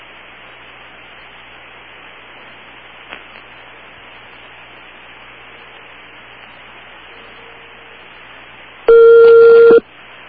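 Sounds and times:
telephone number being dialed: 0:08.9 - 0:09.8.

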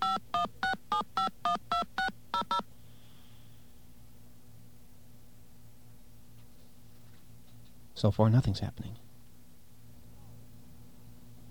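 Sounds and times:
touch-tone telephone keypad DTMF tones dialing: 0:00.0 - 0:02.6
speech: 0:08.0 - 0:09.1.

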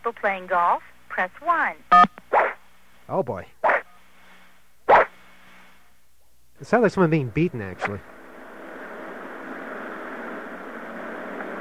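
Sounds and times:
speech: 0:00.0 - 0:02.3, 0:03.1 - 0:03.6, 0:06.6 - 0:08.1
car driving: 0:07.8 - 0:11.6.

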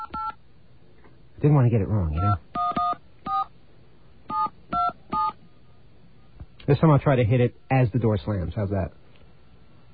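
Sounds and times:
telephone keypad dual-tone beeps: 0:00.0 - 0:00.4, 0:02.2 - 0:03.5, 0:04.3 - 0:05.4
faint hum: 0:00.0 - 0:09.9
speech: 0:01.4 - 0:02.5, 0:06.7 - 0:09.0.

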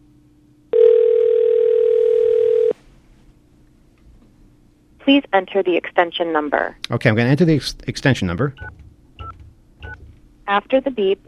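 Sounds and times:
faint low hum: 0:00.0 - 0:11.2
loud telephone dial tone while redialing number: 0:00.8 - 0:02.8
speech: 0:05.1 - 0:08.8, 0:10.5 - 0:11.2.

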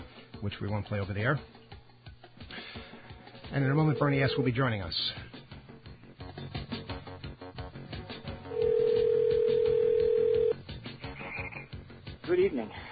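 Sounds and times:
speech: 0:00.4 - 0:01.6, 0:03.5 - 0:05.3, 0:12.3 - 0:12.9
telephone ringing: 0:03.6 - 0:04.6, 0:08.5 - 0:10.6
telephone dialing: 0:08.6 - 0:10.5.

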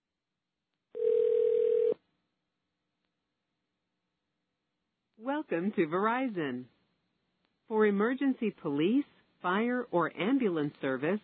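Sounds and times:
telephone dial tone: 0:01.0 - 0:02.0
speech: 0:05.5 - 0:06.8, 0:07.7 - 0:11.2.

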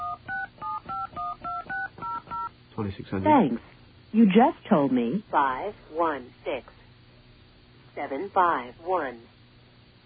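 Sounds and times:
touch-tone phone keypad dialing a number: 0:00.0 - 0:02.5
speech: 0:02.8 - 0:06.8, 0:08.0 - 0:09.3.

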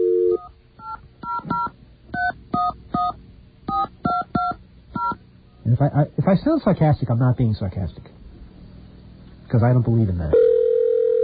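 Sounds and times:
telephone keypad dual-tone beeps: 0:00.0 - 0:05.2
speech: 0:05.7 - 0:08.1, 0:09.5 - 0:10.4.

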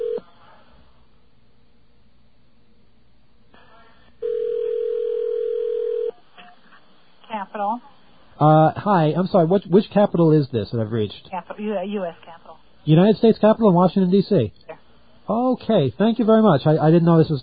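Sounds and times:
dial tone over a phone line: 0:00.0 - 0:00.2, 0:04.2 - 0:06.2
speech: 0:07.5 - 0:14.6, 0:15.3 - 0:17.4.

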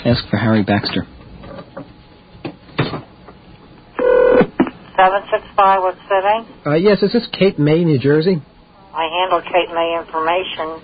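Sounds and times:
speech: 0:00.0 - 0:01.2, 0:05.0 - 0:10.8
telephone being dialed, touch tones: 0:04.0 - 0:04.5.

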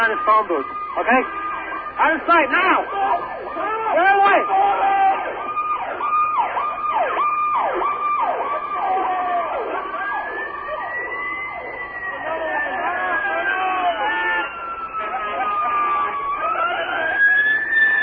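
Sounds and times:
speech: 0:00.0 - 0:04.9
emergency vehicle siren: 0:00.0 - 0:18.0.

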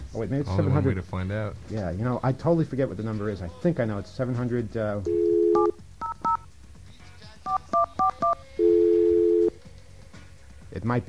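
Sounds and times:
speech: 0:00.1 - 0:05.3, 0:10.8 - 0:11.0
touch-tone phone key beeps: 0:05.1 - 0:06.4, 0:07.5 - 0:09.5.

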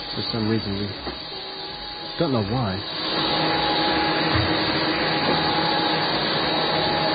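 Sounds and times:
vacuum cleaner running in a radio studio: 0:00.0 - 0:07.1
speech: 0:00.2 - 0:01.4, 0:02.2 - 0:03.1.

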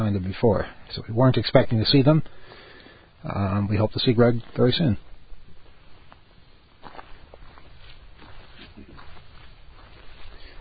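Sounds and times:
speech: 0:00.0 - 0:02.6, 0:03.2 - 0:05.1
constant noise: 0:00.0 - 0:10.5
footsteps of two people walking down a road during a race: 0:04.2 - 0:10.5.

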